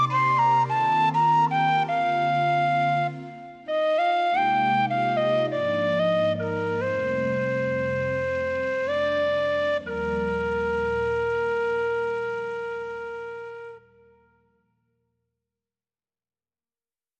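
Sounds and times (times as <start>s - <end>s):
solo tin whistle playing a hymn: 0.0s - 14.3s.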